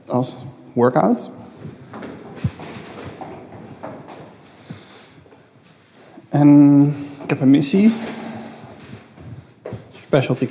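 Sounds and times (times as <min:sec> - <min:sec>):
speech: 0:00.1 - 0:01.4, 0:06.4 - 0:08.2, 0:10.1 - 0:10.4
footsteps on a home staircase: 0:01.5 - 0:06.2, 0:07.2 - 0:10.4.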